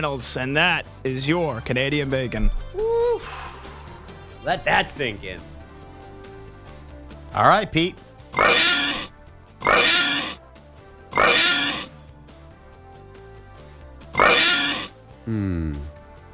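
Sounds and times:
speech: 0.0 - 3.5, 4.4 - 5.5, 7.3 - 9.0
pig oinking sound effect: 8.3 - 10.4, 11.1 - 11.9, 14.1 - 15.0.

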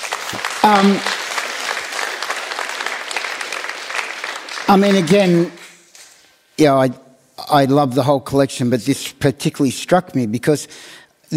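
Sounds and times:
audience clapping: 0.0 - 6.2
speech: 0.3 - 1.1, 4.7 - 5.6, 6.6 - 11.3.

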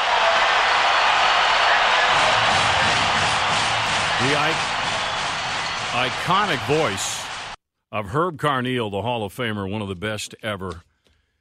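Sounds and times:
stadium crowd cheering: 0.0 - 7.6
speech: 4.2 - 4.8, 6.0 - 7.2, 7.9 - 10.9.

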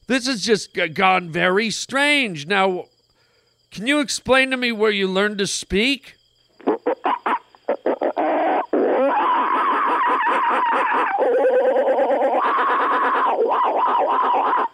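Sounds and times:
speech: 0.1 - 2.9, 3.7 - 6.2
human voice imitating monkey calls: 6.6 - 14.7.

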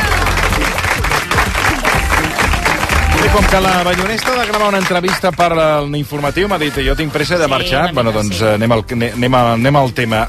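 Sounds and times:
studio audience applause: 0.0 - 5.6
speech: 3.3 - 10.2.

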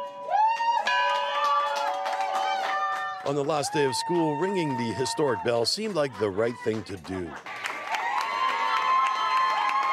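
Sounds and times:
teachers, parents and classmates shouting and whooping for graduating grade 8 students: 0.0 - 9.9
teachers, parents and classmates clapping in a hallway at Rolleston Community School: 0.3 - 9.9
speech: 3.2 - 7.5.

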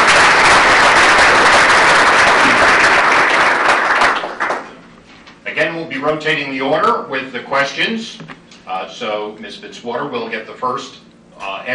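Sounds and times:
audience applause: 0.0 - 4.8
speech: 6.0 - 11.7.

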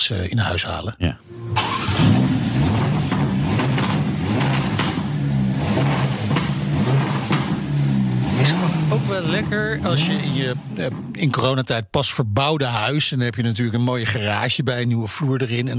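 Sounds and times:
speech: 0.1 - 1.7, 9.2 - 15.7
Ferrari Roma sports car engine revving: 1.3 - 11.4.

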